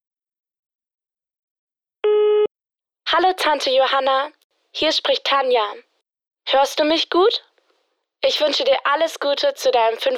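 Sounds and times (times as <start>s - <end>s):
electronic telephone line tone before a voicemail message: 2.0s - 2.5s
speech: 3.1s - 5.9s, 6.5s - 7.5s, 8.2s - 10.1s.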